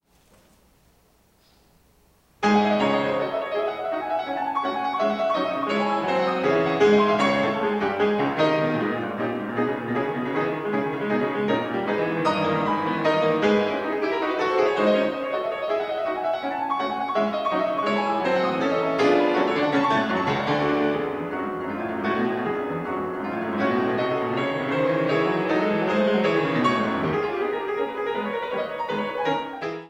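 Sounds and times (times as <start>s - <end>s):
live piano etude in C sharp minor: 2.4s - 29.8s.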